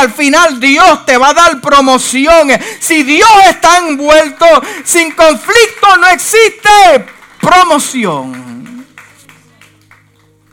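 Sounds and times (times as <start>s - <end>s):
speech: 0.0s - 8.7s
audience applause: 3.8s - 10.5s.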